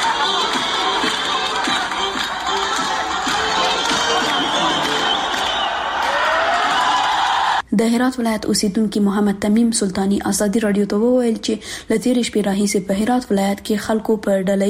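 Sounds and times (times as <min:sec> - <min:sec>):
crowd celebrating a victory in the streets of Herat, Afghanistan: 0:00.0 - 0:07.6
speech: 0:07.8 - 0:14.6.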